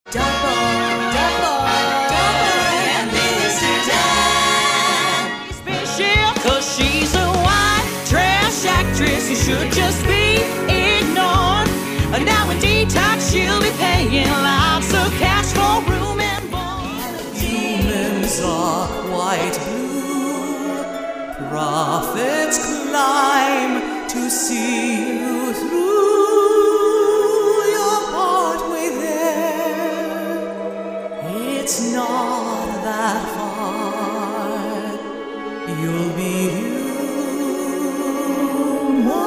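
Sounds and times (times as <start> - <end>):
person singing: 0.0 - 39.2.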